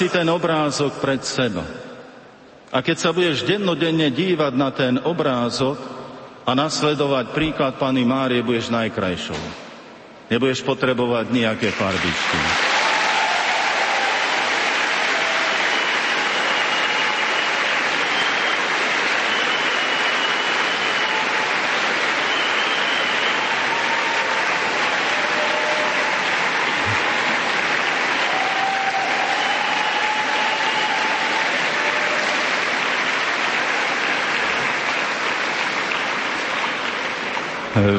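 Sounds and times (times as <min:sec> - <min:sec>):
speech: 0:00.0 - 0:01.9, 0:02.7 - 0:09.6, 0:10.3 - 0:12.7
audience clapping at a talk on a religious theme: 0:11.6 - 0:37.9.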